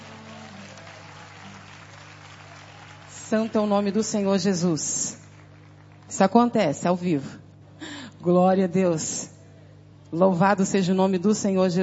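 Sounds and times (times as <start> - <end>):
crowd applauding: 0.0 - 6.3
speech: 3.3 - 5.2, 6.2 - 7.4, 8.2 - 9.3, 10.1 - 11.8.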